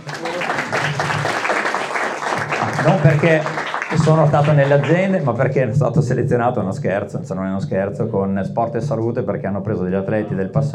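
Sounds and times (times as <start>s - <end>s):
audience applause: 0.0s - 5.3s
speech: 2.8s - 10.7s.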